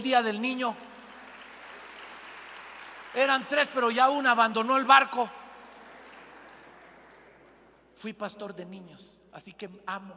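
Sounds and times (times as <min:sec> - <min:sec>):
speech: 0:00.0 - 0:00.9, 0:03.1 - 0:05.4, 0:08.0 - 0:10.1
audience applauding: 0:00.9 - 0:07.8.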